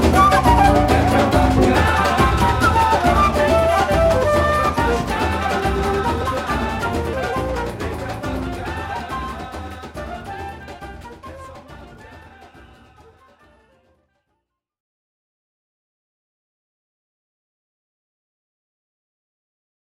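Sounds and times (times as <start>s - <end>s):
batucada samba percussion with jazz: 0.0s - 14.0s.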